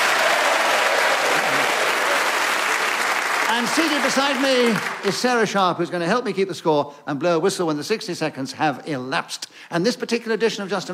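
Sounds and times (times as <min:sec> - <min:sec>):
audience applause: 0:00.0 - 0:05.4
speech: 0:03.5 - 0:10.9.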